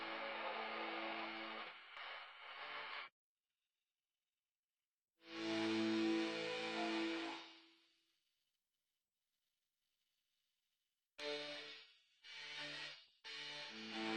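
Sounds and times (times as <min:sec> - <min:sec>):
guitar: 0:00.0 - 0:03.1, 0:05.3 - 0:07.7, 0:11.2 - 0:14.1.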